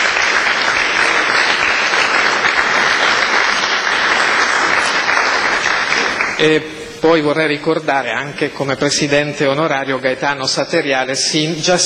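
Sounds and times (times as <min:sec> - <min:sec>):
audience applause: 0:00.0 - 0:06.6
speech: 0:06.4 - 0:11.8.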